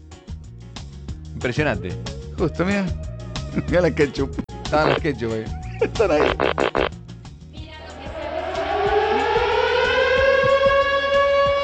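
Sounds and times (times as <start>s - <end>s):
speech: 1.4s - 6.7s
faint low rhythmic thumps: 3.1s - 11.6s
curfew siren wailing: 7.8s - 11.6s.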